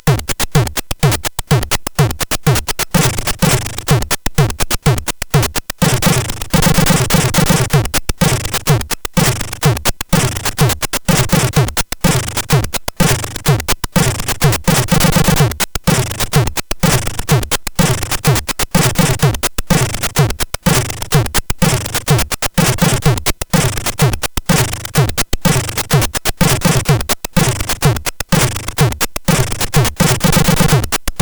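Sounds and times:
SID drums on CSG8580R5 chip: 0.0 - 31.1.

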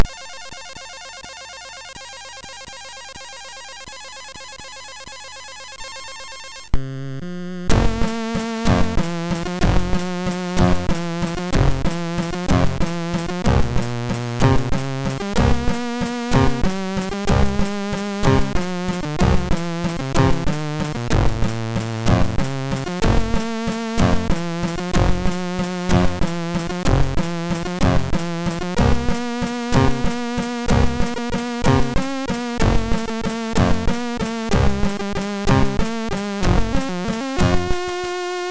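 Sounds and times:
waltz on MOS6581R3: 7.8 - 37.9.

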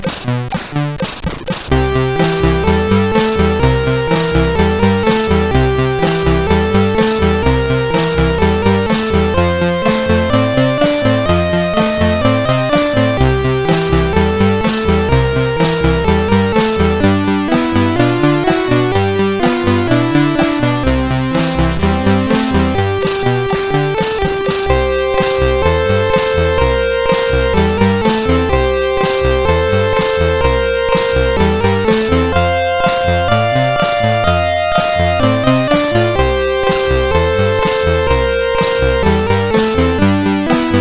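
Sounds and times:
rock music: 0.0 - 40.7.

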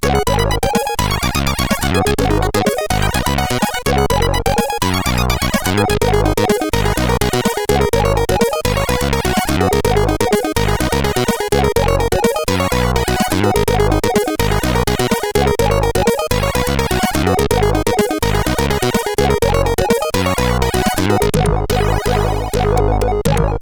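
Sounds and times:
chiptune music on a CSG8580R5 sound chip: 0.0 - 23.6.

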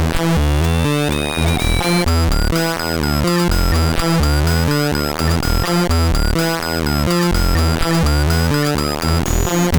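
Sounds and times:
MOS6581R4 sound chip noise: 0.2 - 9.7.

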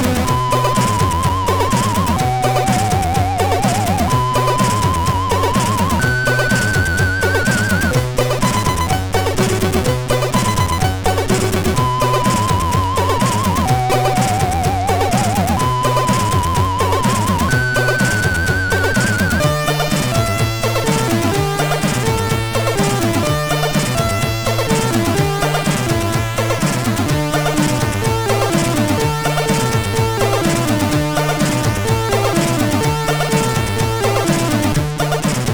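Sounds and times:
news tune on MOS 6581 sound chip: 0.0 - 35.4.

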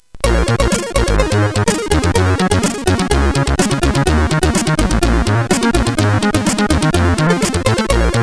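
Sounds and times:
disco music on CSG8580 SID chip: 0.2 - 8.2.

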